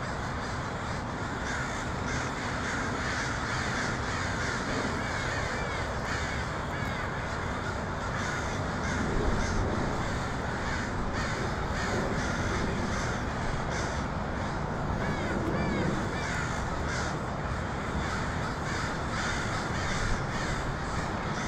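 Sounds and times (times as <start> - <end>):
flock of crows cawing: 0.0 - 21.4.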